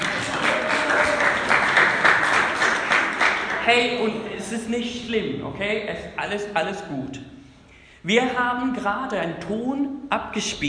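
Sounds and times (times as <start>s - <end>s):
audience applause: 0.0s - 4.0s
speech: 3.7s - 7.4s, 8.0s - 10.6s.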